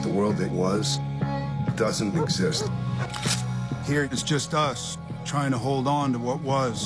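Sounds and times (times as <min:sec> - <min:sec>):
speech: 0:00.1 - 0:06.8
dog yipping in a film trailer: 0:02.1 - 0:03.2.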